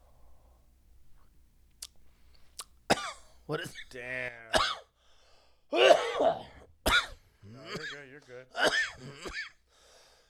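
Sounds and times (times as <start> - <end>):
violent raspy coughing fit: 2.9 - 3.2, 4.5 - 4.9, 5.7 - 9.6
speech: 3.5 - 4.8, 5.7 - 6.5, 7.7 - 9.6.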